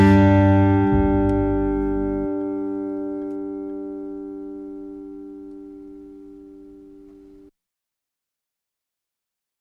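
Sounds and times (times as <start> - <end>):
folk tune: 0.0 - 7.4.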